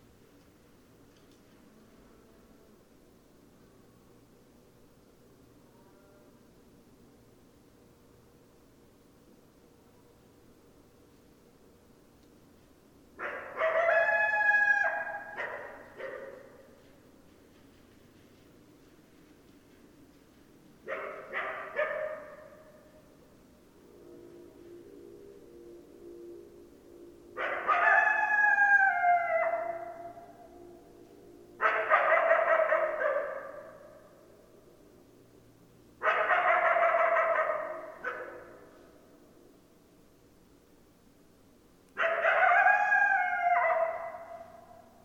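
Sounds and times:
coyotes yipping and howling: 13.2s - 16.8s, 24.1s - 34.2s, 36.0s - 38.8s, 42.0s - 45.0s.

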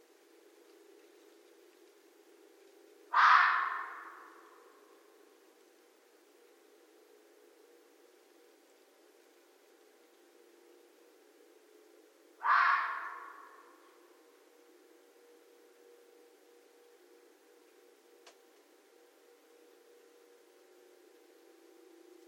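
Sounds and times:
red fox raspy barks: 3.1s - 4.9s, 12.4s - 13.9s.

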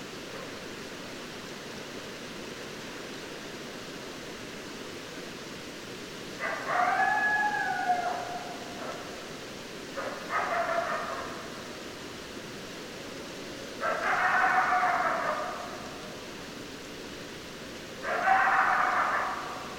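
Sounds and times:
hiss: 0.0s - 19.7s
coyote chorus: 6.4s - 9.2s, 9.9s - 11.7s, 13.7s - 16.2s, 18.0s - 19.7s.

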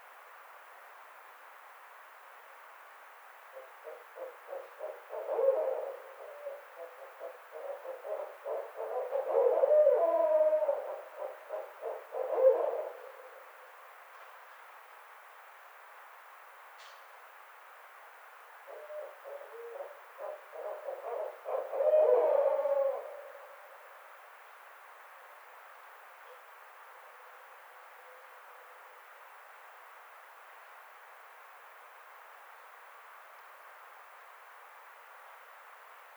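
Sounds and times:
barred owl hooting: 3.6s - 13.5s, 18.7s - 23.8s.

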